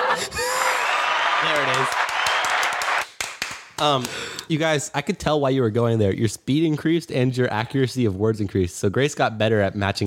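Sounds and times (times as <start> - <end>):
applause sound effect from button: 0.6 - 3.9
speech: 1.4 - 2.0, 3.8 - 10.0.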